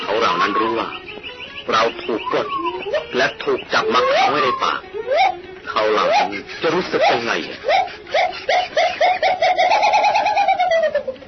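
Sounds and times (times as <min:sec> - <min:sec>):
gibbons howling mournfully: 0:00.0 - 0:11.2
speech: 0:00.2 - 0:10.2
laughter: 0:01.8 - 0:11.2.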